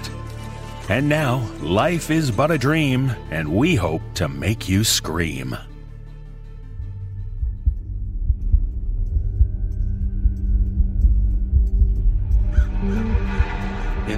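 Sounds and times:
speech: 0.9 - 5.7
deep heartbeat thumping: 6.8 - 14.1
low droning hum: 6.8 - 14.1
faint eerie tones: 7.8 - 14.1.

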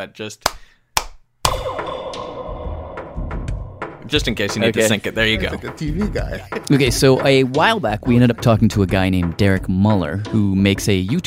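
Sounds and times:
speech: 0.0 - 0.8, 4.1 - 11.2
hand claps for syncing: 0.4 - 1.6
laughter: 4.7 - 7.6.

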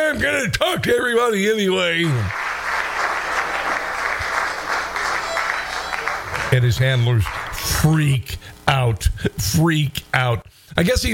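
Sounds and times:
speech: 0.1 - 2.4, 6.5 - 11.1
crowd cheering: 2.0 - 8.0
applause: 2.1 - 7.9.

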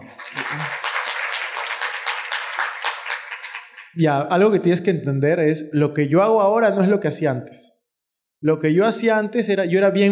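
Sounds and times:
audience applause: 0.0 - 4.0
speech: 4.0 - 7.8, 8.4 - 10.0.

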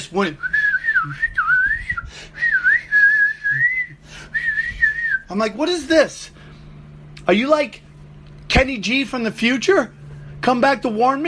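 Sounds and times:
speech: 0.1 - 1.4, 5.3 - 6.4, 7.3 - 7.8, 8.6 - 11.2
person whistling a shrill flute-like melody: 0.4 - 5.3.

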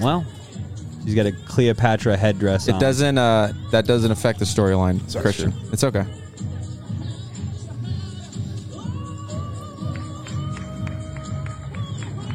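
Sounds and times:
speech: 0.0 - 0.4, 1.0 - 6.2
crowd clapping in a video: 9.8 - 12.3.

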